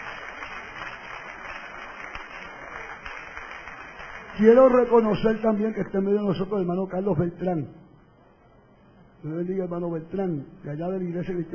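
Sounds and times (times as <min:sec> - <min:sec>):
audience applauding: 0:00.0 - 0:05.3
speech: 0:04.4 - 0:07.8, 0:09.2 - 0:11.5.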